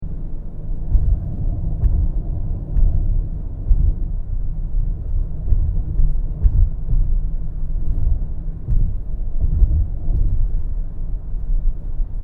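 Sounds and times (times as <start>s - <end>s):
Toyota Kluger interior driving over cats eyes: 0.0s - 11.8s.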